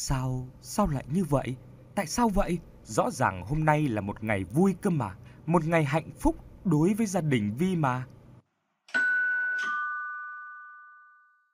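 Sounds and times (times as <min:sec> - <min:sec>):
speech: 0:00.0 - 0:08.2
doorbell ringing: 0:08.9 - 0:11.5.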